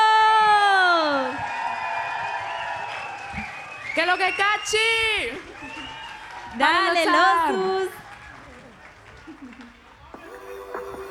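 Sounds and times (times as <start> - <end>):
audience cheering: 1.0 - 8.9
audience applause: 1.4 - 4.0, 5.3 - 11.1
speech: 4.0 - 5.5, 6.6 - 8.0.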